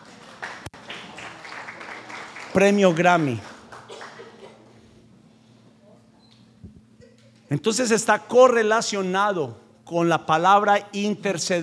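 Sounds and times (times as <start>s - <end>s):
applause for the actors: 0.0s - 4.6s
speech: 2.6s - 3.5s, 7.5s - 11.6s.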